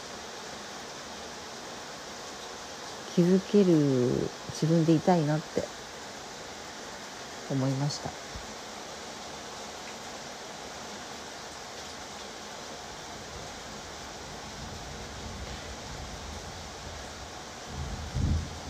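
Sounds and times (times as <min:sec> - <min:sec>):
heavy rain during a thunderstorm: 0:00.0 - 0:18.6
speech: 0:03.2 - 0:05.8, 0:07.5 - 0:08.4.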